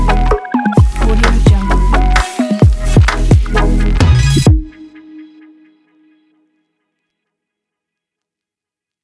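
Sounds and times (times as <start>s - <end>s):
fashion showreel music: 0.0s - 6.3s.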